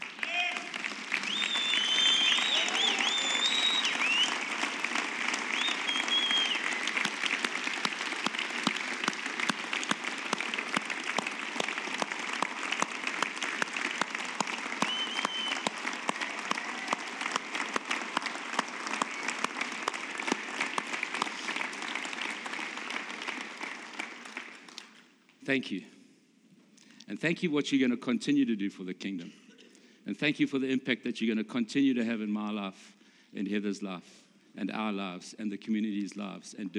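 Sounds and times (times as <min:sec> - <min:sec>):
standing round of applause: 0:00.0 - 0:25.1
speech: 0:25.5 - 0:25.9, 0:27.1 - 0:29.4, 0:30.1 - 0:36.7.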